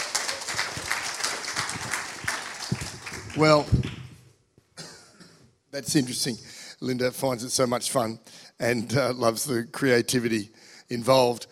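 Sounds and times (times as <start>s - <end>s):
audience applause: 0.0s - 4.1s
speech: 3.4s - 3.9s, 5.8s - 11.5s.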